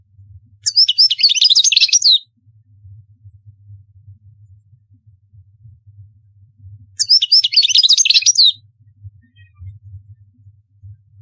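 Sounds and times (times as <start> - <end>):
quiet low hum: 0.0 - 11.2
European goldfinch twittering: 0.7 - 2.2, 7.0 - 8.6.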